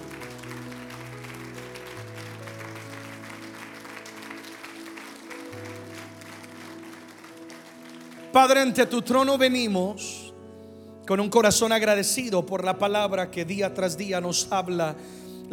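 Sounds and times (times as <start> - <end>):
audience applause: 0.0 - 9.4
speech: 8.4 - 10.2, 11.1 - 15.5.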